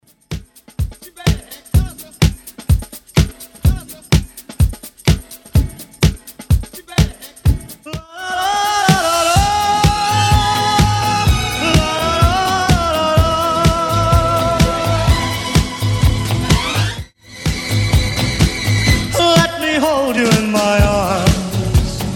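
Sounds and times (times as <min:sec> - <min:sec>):
1970s-style Baltimore club beat at 126 bpm: 0:00.0 - 0:22.1.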